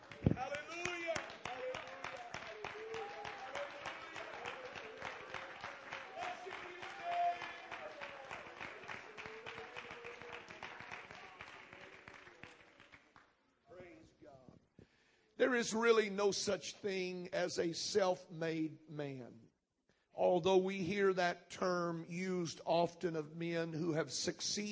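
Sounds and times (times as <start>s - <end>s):
audience applauding: 0.0s - 13.3s
speech: 15.5s - 19.4s, 20.3s - 24.7s.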